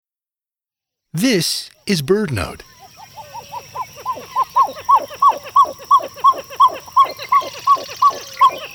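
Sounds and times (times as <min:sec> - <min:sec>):
speech: 0:01.1 - 0:02.8
pied-billed grebe song: 0:02.5 - 0:08.7.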